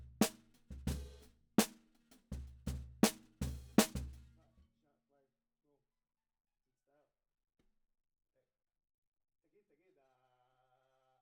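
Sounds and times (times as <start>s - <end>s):
snare drum recorded from the bottom: 0.0s - 4.3s.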